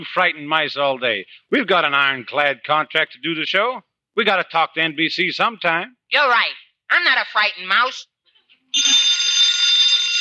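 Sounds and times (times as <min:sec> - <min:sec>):
speech: 0:00.0 - 0:08.1, 0:08.8 - 0:09.1
telephone ringing: 0:08.7 - 0:10.2.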